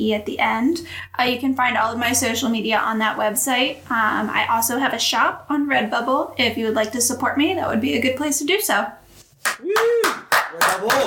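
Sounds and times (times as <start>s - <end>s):
speech: 0.0s - 11.0s
applause, hands clapping: 9.4s - 11.0s.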